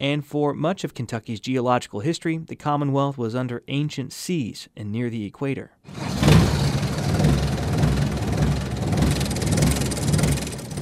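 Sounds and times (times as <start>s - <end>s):
speech: 0.0s - 6.1s
diesel engine running on a four-person ride vehicle in a Kentucky coal mine: 5.9s - 10.8s.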